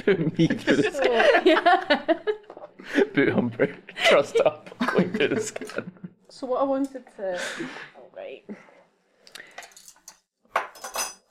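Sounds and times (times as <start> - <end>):
laughter: 0.0 - 6.2
speech: 0.0 - 8.6
metal kitchen spoons and a skirt hanger clinking and jangling: 9.5 - 11.2.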